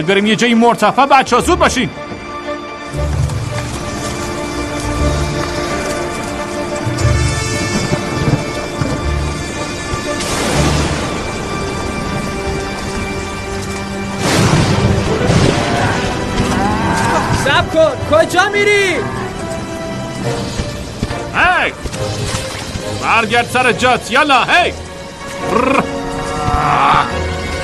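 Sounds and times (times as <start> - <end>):
speech: 0.0 - 3.2, 17.8 - 19.2, 21.4 - 22.2, 23.0 - 24.8, 25.4 - 25.9
heavy rain in a thunderstorm with flooding on a main street: 2.9 - 27.6.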